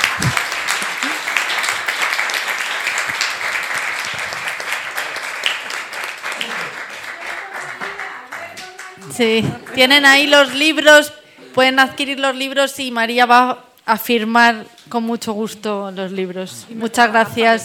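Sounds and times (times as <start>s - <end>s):
audience applause: 0.0s - 10.6s
speech: 9.2s - 17.6s.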